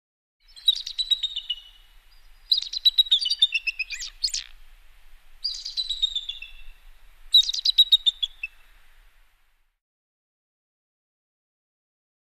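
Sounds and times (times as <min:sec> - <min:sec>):
bird twittering: 0:00.4 - 0:04.6, 0:05.4 - 0:08.6.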